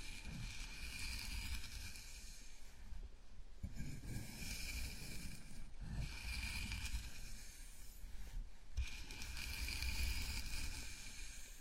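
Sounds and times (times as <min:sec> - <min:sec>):
fingers rubbing and scratching through hair in a scalp massage: 0:00.0 - 0:02.2, 0:03.8 - 0:07.4, 0:08.8 - 0:11.4.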